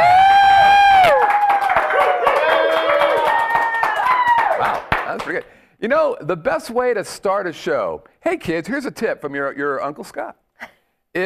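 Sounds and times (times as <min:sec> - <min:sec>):
thunderous applause and cheering: 0:00.0 - 0:05.5
speech: 0:05.8 - 0:11.2.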